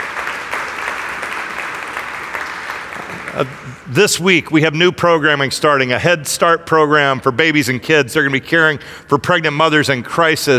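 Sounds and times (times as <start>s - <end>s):
audience clapping: 0.0s - 4.0s
speech: 3.4s - 10.5s.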